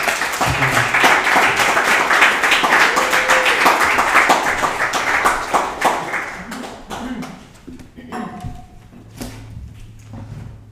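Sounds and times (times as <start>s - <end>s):
crowd applause: 0.0s - 7.6s.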